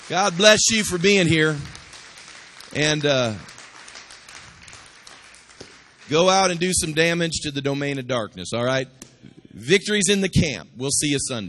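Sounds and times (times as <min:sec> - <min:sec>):
church congregation clapping: 0:00.0 - 0:07.9
speech: 0:00.1 - 0:01.8, 0:02.8 - 0:03.5, 0:06.1 - 0:11.4.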